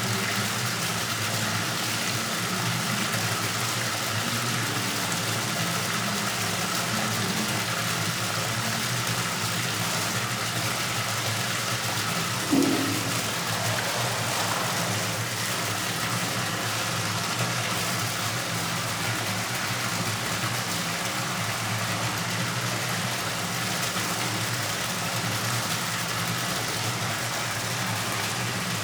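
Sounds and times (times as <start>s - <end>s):
communal baths ambience: 0.0s - 28.8s.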